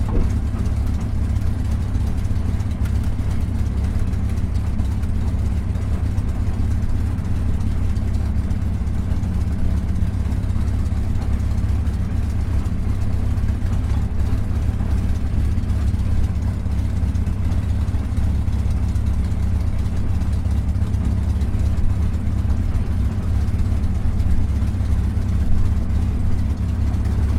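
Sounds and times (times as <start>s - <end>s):
CA-18 Mustang Mk23 aircraft preflight heard from the interior: 0.0s - 27.2s.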